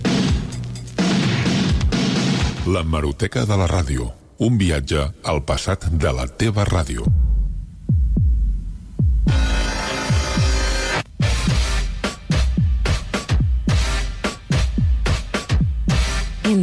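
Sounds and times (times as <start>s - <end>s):
electronic backing beat: 0.0s - 2.6s, 7.0s - 16.6s
speech: 2.7s - 7.2s.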